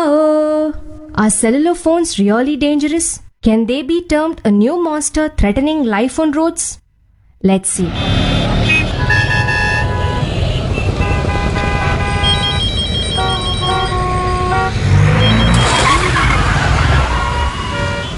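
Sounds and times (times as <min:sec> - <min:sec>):
speech: 0:01.2 - 0:06.8, 0:07.4 - 0:08.4
tyres skidding: 0:07.8 - 0:18.1
car accident: 0:07.9 - 0:18.1.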